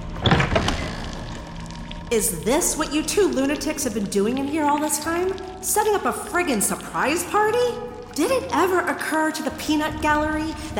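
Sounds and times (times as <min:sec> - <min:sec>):
door swinging open: 0:00.2 - 0:01.0
speech: 0:02.1 - 0:10.7.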